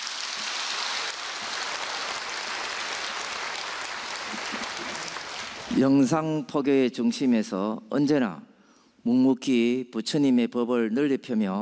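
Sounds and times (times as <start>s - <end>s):
audience applause: 0.0s - 5.9s
speech: 5.8s - 11.6s.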